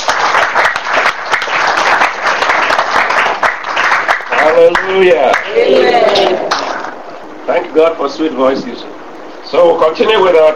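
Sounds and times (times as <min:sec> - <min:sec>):
audience clapping: 0:00.0 - 0:07.0
speech: 0:04.6 - 0:06.1, 0:07.5 - 0:10.5.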